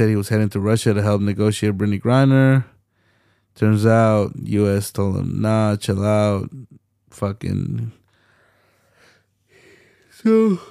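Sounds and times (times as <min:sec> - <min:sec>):
speech: 0:00.0 - 0:02.7, 0:03.6 - 0:08.0, 0:10.2 - 0:10.6
yawn: 0:10.0 - 0:10.6.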